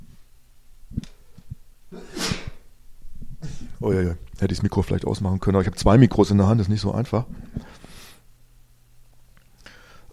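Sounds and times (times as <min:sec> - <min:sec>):
sneeze: 0:01.9 - 0:02.6
speech: 0:03.8 - 0:07.5.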